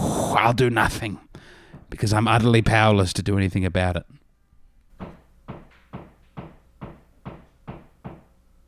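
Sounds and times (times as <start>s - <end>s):
speech: 0.4s - 1.3s, 1.9s - 4.2s
hammering nearby: 5.0s - 8.4s.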